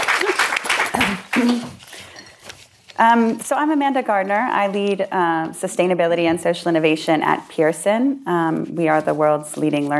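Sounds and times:
audience clapping: 0.0s - 1.8s
speech: 3.0s - 9.9s.

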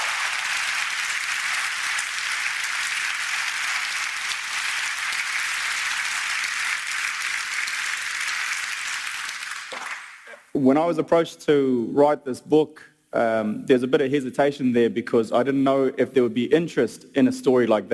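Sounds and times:
crowd applauding: 0.0s - 10.4s
speech: 10.6s - 17.9s.

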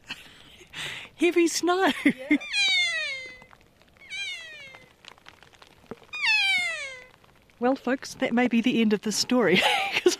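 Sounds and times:
faint background hiss: 0.0s - 10.1s
speech: 1.2s - 2.7s, 7.6s - 9.9s
kea screeching cries: 2.4s - 4.9s, 6.1s - 7.2s.

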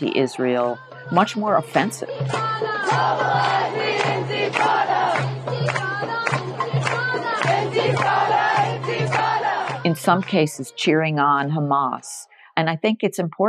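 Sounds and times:
speech: 0.0s - 5.6s, 10.0s - 13.4s
protest crowd chanting: 2.2s - 10.0s.

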